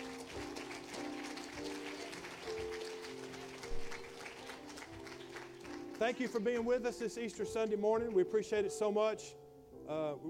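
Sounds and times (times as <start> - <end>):
audience hand clapping: 0.0 - 6.7
speech: 6.0 - 10.2.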